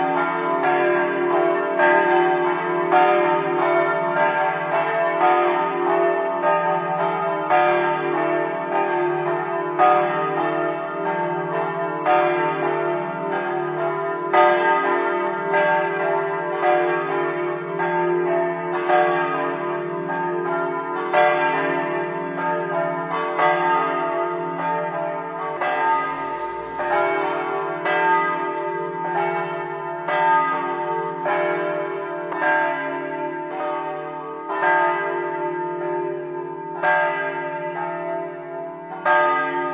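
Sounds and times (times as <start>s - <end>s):
church bells ringing in Verzegnis: 0.0s - 39.7s.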